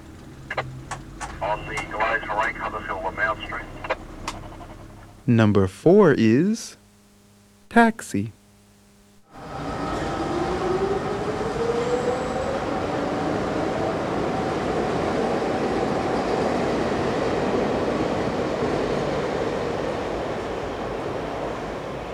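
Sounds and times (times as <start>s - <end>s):
speech: 1.4s - 3.9s, 5.3s - 6.8s, 7.7s - 8.4s
subway train: 9.4s - 22.1s.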